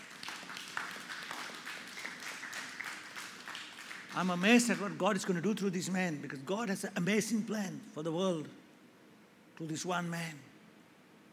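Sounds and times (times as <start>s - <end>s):
audience clapping: 0.0s - 5.6s
speech: 4.2s - 8.6s, 9.6s - 10.5s.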